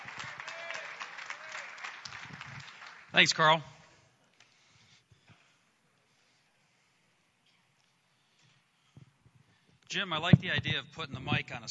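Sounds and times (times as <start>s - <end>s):
audience clapping welcoming a speaker: 0.0s - 3.6s
speech: 3.2s - 3.7s, 10.0s - 11.7s.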